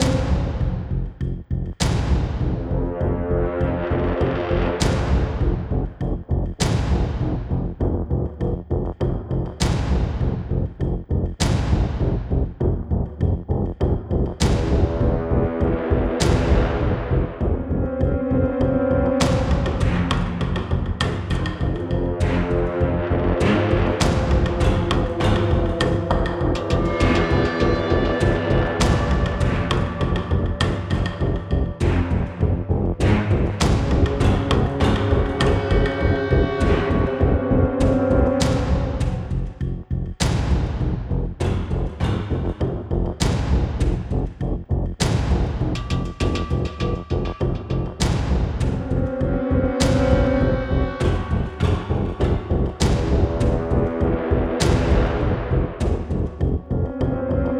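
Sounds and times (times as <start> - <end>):
danger music loop: 0.0 - 57.5.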